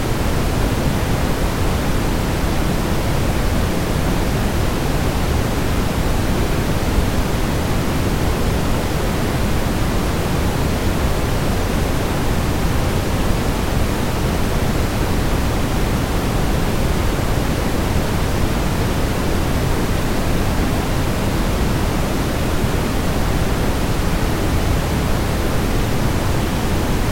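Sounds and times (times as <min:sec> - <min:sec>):
pink noise: 0:00.0 - 0:27.1.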